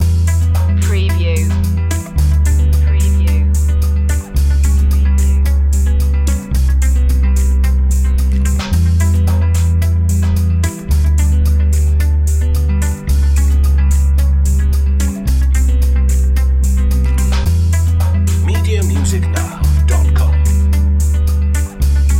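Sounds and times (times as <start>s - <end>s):
positive guitar background loop: 0.0s - 22.1s.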